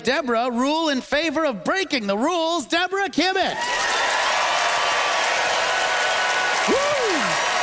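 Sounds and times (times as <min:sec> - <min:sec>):
speech: 0:00.0 - 0:03.9
audience applause: 0:03.6 - 0:07.6.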